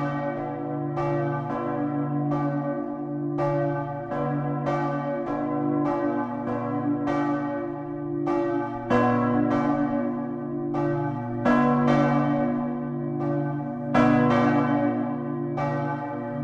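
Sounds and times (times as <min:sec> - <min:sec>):
church bells of St. Petri Kirche in Westerstede ringing: 0:00.0 - 0:16.4.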